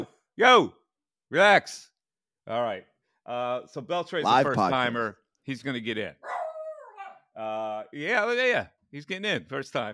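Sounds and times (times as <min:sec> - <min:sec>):
speech: 0:00.4 - 0:01.9, 0:02.5 - 0:06.4, 0:07.4 - 0:09.9
dog whimpering: 0:06.3 - 0:07.2.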